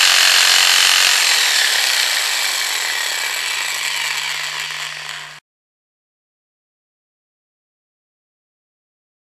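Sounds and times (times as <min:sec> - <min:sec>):
jigsaw cutting: 0:00.0 - 0:05.4.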